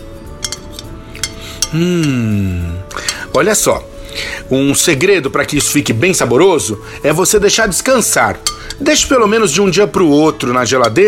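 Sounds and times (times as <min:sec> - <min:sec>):
utensil stirring seasoned food in a bowl: 0:00.3 - 0:02.2, 0:02.9 - 0:03.8, 0:07.3 - 0:11.0
speech: 0:01.7 - 0:11.0.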